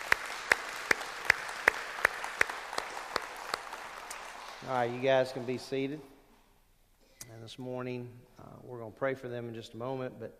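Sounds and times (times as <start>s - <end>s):
audience applause: 0.0s - 5.9s
speech: 4.6s - 6.1s, 7.4s - 10.3s.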